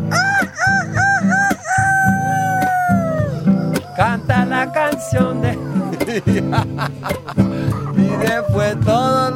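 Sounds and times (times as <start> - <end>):
hoarse rooster crowing: 0.1 - 6.1, 7.7 - 8.9
laughter: 2.2 - 9.2
speech: 6.2 - 7.5.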